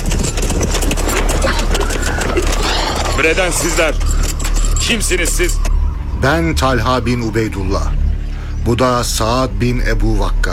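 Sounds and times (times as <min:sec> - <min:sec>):
hoofbeats of horses with riders approaching: 0:00.0 - 0:05.7
speech: 0:03.2 - 0:04.2, 0:04.8 - 0:08.0, 0:08.6 - 0:10.5.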